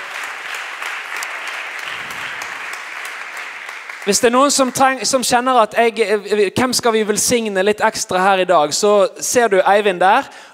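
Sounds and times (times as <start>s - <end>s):
audience applause: 0.0s - 5.1s
speech: 4.1s - 10.5s.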